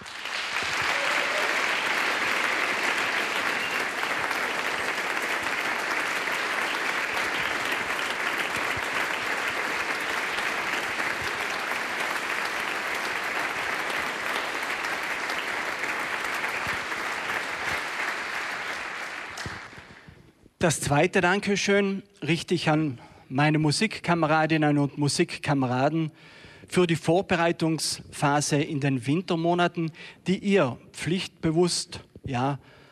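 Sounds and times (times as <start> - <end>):
audience applause: 0.0 - 20.1
speech: 20.6 - 32.8.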